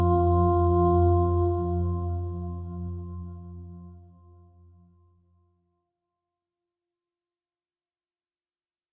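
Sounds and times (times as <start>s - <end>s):
relaxing music: 0.0s - 5.1s.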